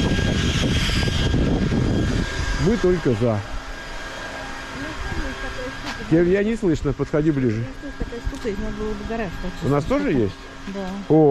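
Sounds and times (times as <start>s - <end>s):
petrol leaf blower running: 0.0s - 11.2s
speech: 2.6s - 3.5s, 5.5s - 11.2s.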